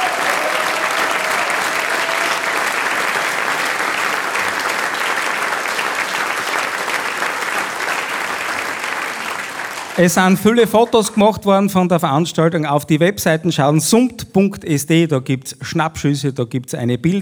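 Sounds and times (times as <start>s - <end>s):
audience applauding: 0.0s - 11.2s
speech: 10.0s - 17.1s.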